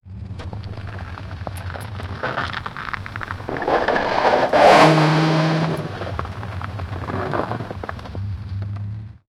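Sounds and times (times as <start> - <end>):
off-road vehicle recorded outdoors: 0.1 - 9.2.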